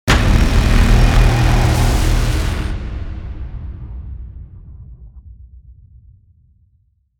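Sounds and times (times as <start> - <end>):
big surge hit: 0.0 - 5.2.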